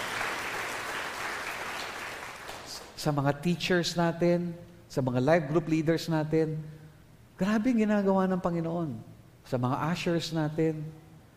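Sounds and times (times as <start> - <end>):
church congregation applause honouring the tech and media team: 0.0 - 2.9
speech: 3.0 - 6.8, 7.4 - 11.0.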